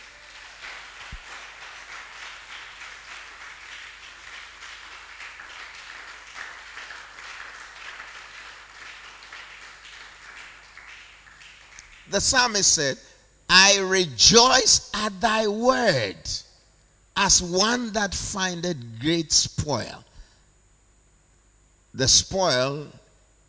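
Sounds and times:
audience clapping: 0.0s - 12.9s
speech: 12.1s - 16.4s, 17.2s - 20.0s, 22.0s - 23.0s.

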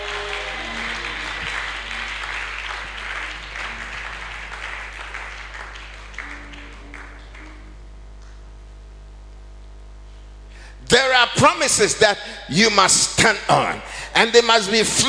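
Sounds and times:
audience clapping: 0.0s - 8.4s
speech: 10.9s - 15.0s.

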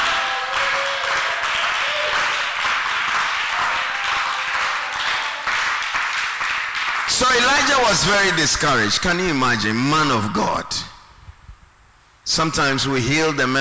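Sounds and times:
audience applause: 0.0s - 9.0s
speech: 7.3s - 10.9s, 12.3s - 13.5s.

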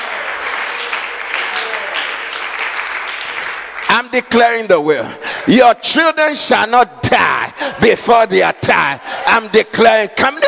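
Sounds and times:
audience clapping: 0.0s - 5.1s
speech: 4.0s - 10.4s.

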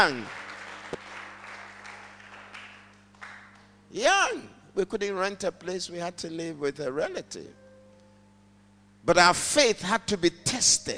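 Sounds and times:
speech: 0.0s - 1.0s, 3.9s - 7.6s, 9.0s - 10.9s
audience clapping: 0.0s - 3.8s.

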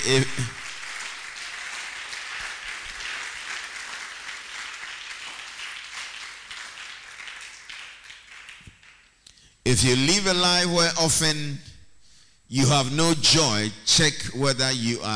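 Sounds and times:
speech: 0.0s - 0.6s, 9.7s - 11.7s, 12.5s - 15.1s
audience clapping: 0.0s - 9.3s.

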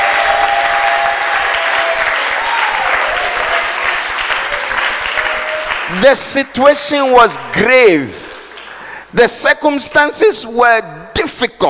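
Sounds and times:
audience clapping: 0.0s - 6.8s, 8.2s - 9.1s
speech: 6.0s - 8.2s, 9.1s - 11.6s.

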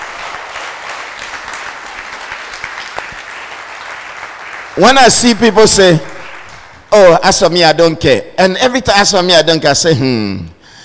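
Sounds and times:
church audience clapping: 0.0s - 6.9s
speech: 4.8s - 6.1s, 6.9s - 10.6s.

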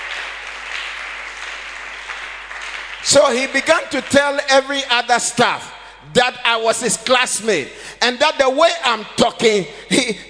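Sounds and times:
audience clapping: 0.0s - 4.9s
speech: 3.0s - 10.2s.

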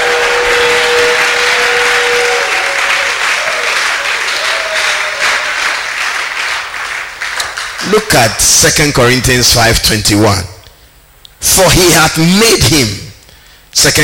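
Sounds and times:
audience shouting: 0.0s - 5.9s
audience clapping: 0.0s - 9.6s
speech: 8.0s - 10.5s, 11.4s - 13.0s, 13.8s - 14.0s.

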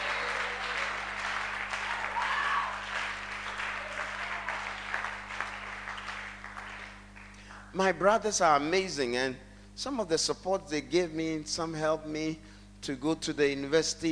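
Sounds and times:
audience clapping: 0.0s - 7.7s
speech: 7.8s - 14.1s.

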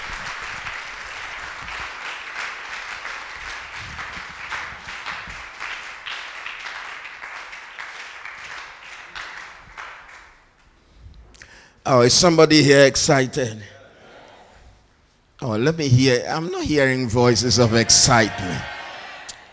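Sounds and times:
audience clapping: 0.0s - 10.7s, 17.2s - 19.5s
speech: 11.9s - 13.7s, 15.6s - 18.7s.

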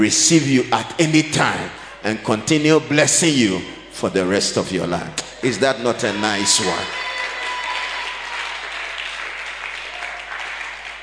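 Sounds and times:
speech: 0.0s - 7.1s
audience clapping: 6.6s - 11.0s.

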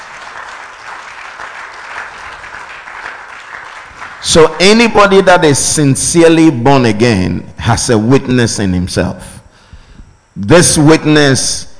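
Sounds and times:
audience clapping: 0.0s - 4.8s
speech: 4.2s - 9.4s, 10.4s - 11.7s.

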